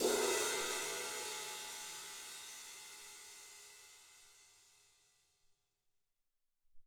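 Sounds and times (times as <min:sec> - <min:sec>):
sizzle cymbal from Alesis SR-18 drum machine: 0:00.0 - 0:04.1.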